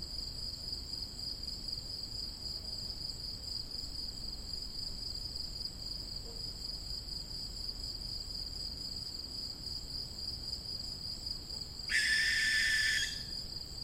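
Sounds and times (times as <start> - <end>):
young barn owl hissing screech: 11.9 - 13.3.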